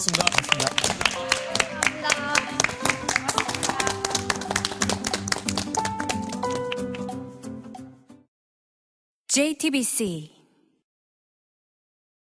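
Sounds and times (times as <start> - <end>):
speech: 0.0 - 1.2, 9.3 - 10.4
audience applause: 0.0 - 7.0.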